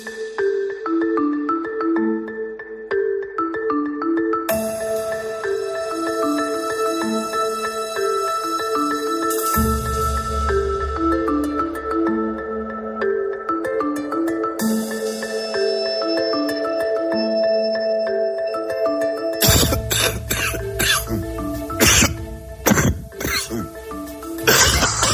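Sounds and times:
music with sustained tones: 0:00.0 - 0:25.1
people coughing from the flu: 0:19.4 - 0:23.8, 0:24.4 - 0:25.1.

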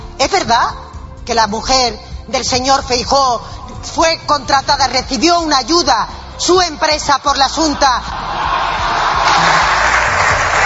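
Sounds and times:
speech: 0:00.3 - 0:08.3
ovation and applause from the Socialist benches in parliament: 0:08.5 - 0:10.6.

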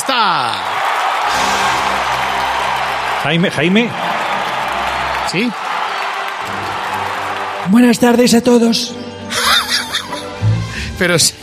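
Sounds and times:
crowd clapping: 0:00.0 - 0:08.6
speech: 0:03.2 - 0:04.1, 0:05.3 - 0:05.7, 0:07.6 - 0:09.0, 0:11.0 - 0:11.4
laughter: 0:09.3 - 0:10.4.

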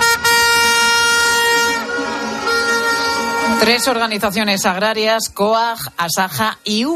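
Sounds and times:
tractor protest horns blaring: 0:00.0 - 0:05.5
speech: 0:03.6 - 0:06.9.

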